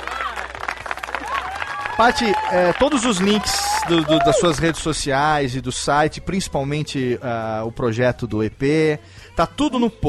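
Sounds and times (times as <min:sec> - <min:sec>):
applause: 0:00.0 - 0:05.0
speech: 0:02.0 - 0:10.0.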